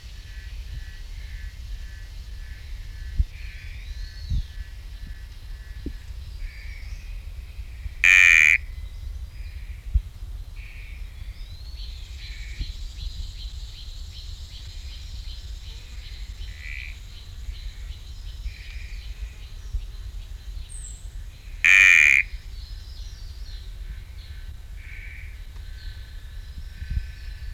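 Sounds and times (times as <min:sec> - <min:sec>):
chirping insects or frogs: 0:00.0 - 0:09.9, 0:10.6 - 0:27.5
sticky frog buzzy call: 0:08.0 - 0:08.7, 0:21.6 - 0:22.4.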